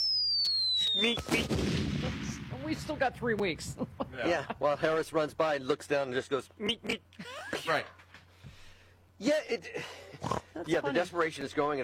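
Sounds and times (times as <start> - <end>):
comedic falling-bomb whistle effect: 0.0 - 1.6
noisy crackling cartoon blast: 0.5 - 3.7
speech: 1.0 - 8.0, 9.2 - 11.8.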